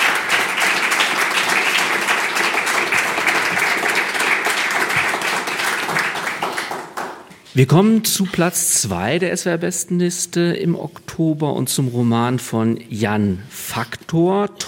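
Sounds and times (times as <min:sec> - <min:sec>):
audience applauding: 0:00.0 - 0:07.4
speech: 0:07.6 - 0:14.6.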